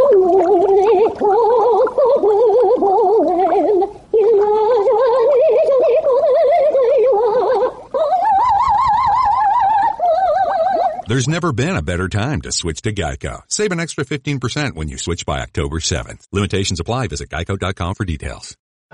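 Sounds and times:
goldfish gargling an opera aria: 0.0 - 11.3
speech: 11.2 - 18.9.

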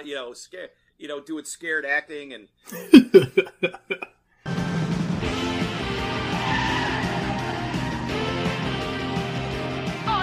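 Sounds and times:
speech: 0.0 - 4.1
laughter: 2.7 - 4.1
car engines roaring in a film car chase: 5.3 - 9.8
car tires squealing in a film car chase: 5.9 - 8.8.

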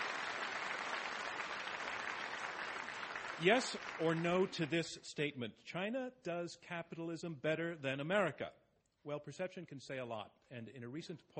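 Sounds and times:
audience applause: 0.0 - 4.8
speech: 3.4 - 11.3.

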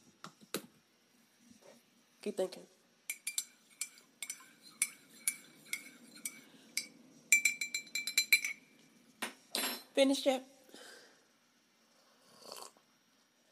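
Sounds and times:
speech: 2.2 - 2.8, 10.0 - 10.5
cup clinking while taking a sip: 3.1 - 9.9.

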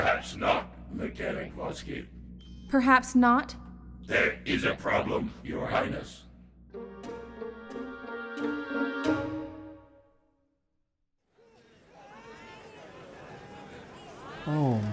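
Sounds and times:
speech: 0.2 - 6.2, 8.4 - 9.2, 14.5 - 14.9
bustling market day crowds: 11.3 - 14.9.

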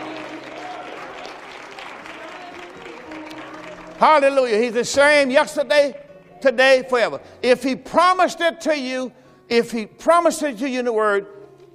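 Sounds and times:
audience clapping hands: 0.0 - 5.1
speech: 4.0 - 11.4.

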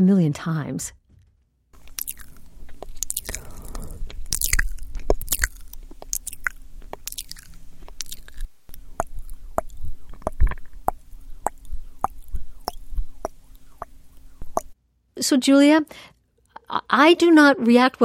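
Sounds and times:
speech: 0.0 - 1.0, 15.2 - 18.0
ASMR wet mouth clicks and smacking sounds: 1.8 - 14.8
faint steady hum: 1.8 - 17.3.

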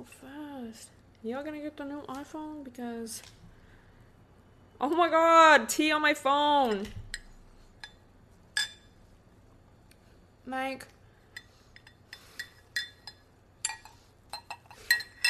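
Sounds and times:
speech: 0.0 - 3.4, 4.8 - 7.0, 10.5 - 11.0
reusable straw clinking against a glass: 11.8 - 15.2.

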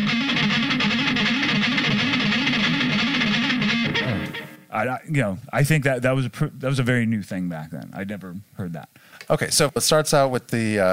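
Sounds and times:
palm-muted heavily distorted electric guitar: 0.0 - 4.8
speech: 4.8 - 10.9.

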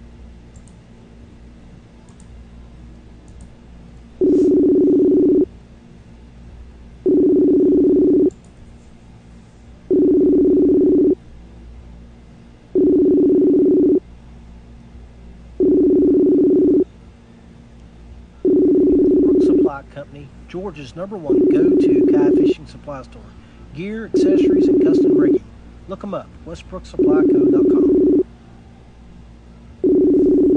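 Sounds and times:
telephone ringing tone while a call is placed to two guests: 4.2 - 5.5, 7.0 - 8.3, 9.9 - 11.2, 12.8 - 14.0, 15.6 - 16.8, 18.4 - 19.7, 21.3 - 22.6, 24.2 - 25.4, 27.0 - 28.2, 29.8 - 30.5
speech: 20.7 - 22.0, 22.6 - 27.8.

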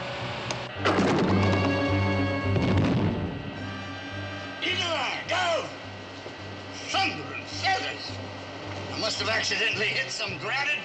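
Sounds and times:
low droning hum: 0.0 - 10.8
remote control ejector launching into space: 0.7 - 4.0
speech: 9.2 - 10.8.

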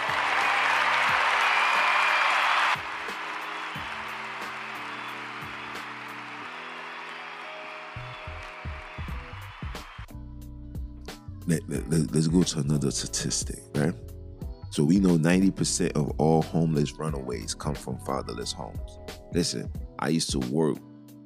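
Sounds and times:
crowd applause: 0.0 - 10.1
speech: 11.5 - 14.1, 14.8 - 20.9.

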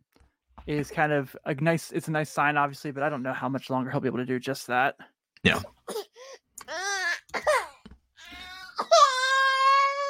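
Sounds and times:
speech: 0.7 - 6.0
baby fussing and crying: 5.9 - 10.0.

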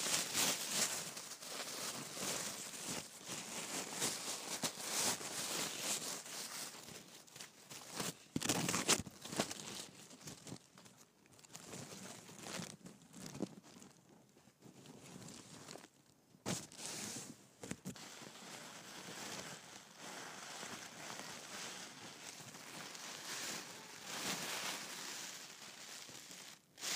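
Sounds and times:
tissue paper crinkling and rustling in gift wrapping: 0.0 - 14.0, 16.5 - 26.9.

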